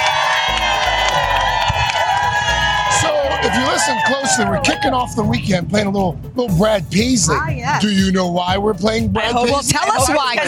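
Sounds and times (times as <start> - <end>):
outdoor crowd cheering and whooping: 0.0 - 5.4
speech: 3.7 - 10.4.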